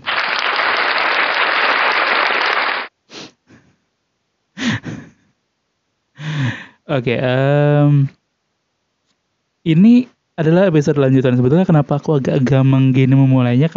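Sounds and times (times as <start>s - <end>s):
crowd hand clapping: 0.0s - 2.9s
speech: 6.9s - 8.2s, 9.6s - 13.7s.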